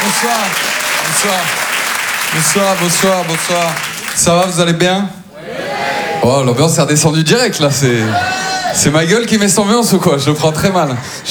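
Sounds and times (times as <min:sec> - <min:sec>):
comedy club audience applauding a comedian: 0:00.0 - 0:04.6
speech: 0:00.2 - 0:01.7, 0:02.3 - 0:05.6, 0:06.2 - 0:11.3.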